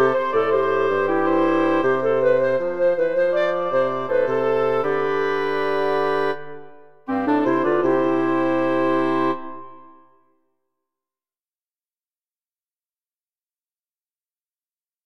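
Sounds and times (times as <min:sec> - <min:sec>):
woodwind quartet playing andante: 0:00.0 - 0:10.2.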